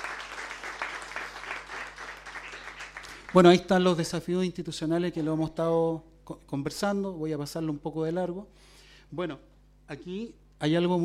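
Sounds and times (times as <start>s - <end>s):
audience applause: 0.0s - 3.7s
speech: 3.3s - 11.0s.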